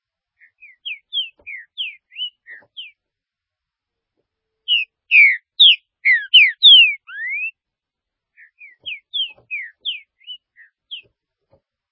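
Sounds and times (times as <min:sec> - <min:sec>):
green-winged saltator singing: 0:00.4 - 0:03.0, 0:04.7 - 0:07.6, 0:08.4 - 0:11.1.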